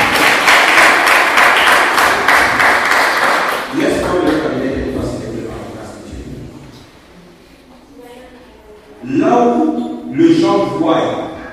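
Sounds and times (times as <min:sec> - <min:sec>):
church congregation clapping acclaiming the word of God: 0:00.0 - 0:04.7
church congregation voices: 0:00.0 - 0:11.5.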